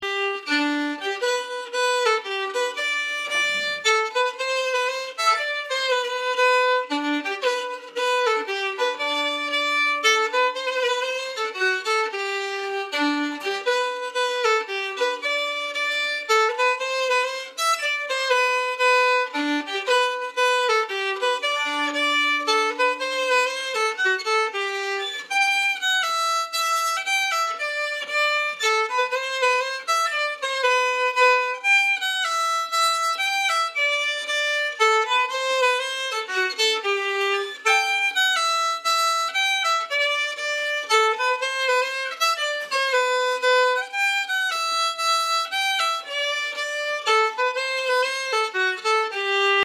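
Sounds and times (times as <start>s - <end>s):
mazurka: 0.1s - 49.6s.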